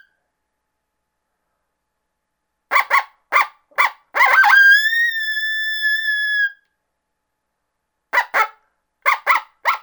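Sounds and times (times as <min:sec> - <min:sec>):
coyote barks: 0:02.7 - 0:06.5, 0:08.1 - 0:09.8.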